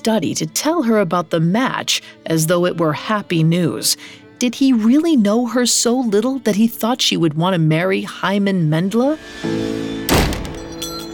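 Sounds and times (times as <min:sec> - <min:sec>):
speech: 0:00.0 - 0:10.1
door slamming: 0:10.0 - 0:11.1
brass mezuzah case falling onto the floor: 0:10.1 - 0:11.1.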